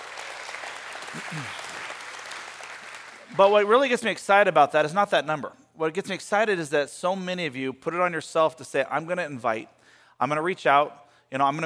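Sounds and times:
large crowd applauding in a big room: 0:00.0 - 0:03.9
speech: 0:01.1 - 0:01.6, 0:03.3 - 0:11.6.

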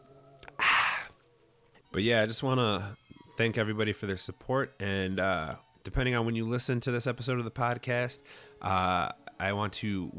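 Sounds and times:
swig of water being drunk: 0:00.4 - 0:01.2
speech: 0:02.0 - 0:10.1.

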